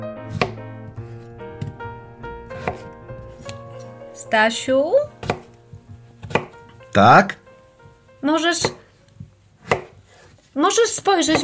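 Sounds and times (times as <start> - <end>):
knife cutting potatoes on a board: 2.6 - 3.9, 5.2 - 6.6, 9.6 - 10.3, 11.3 - 11.4
speech: 4.3 - 5.1, 7.0 - 7.4, 8.2 - 8.8, 10.6 - 11.4.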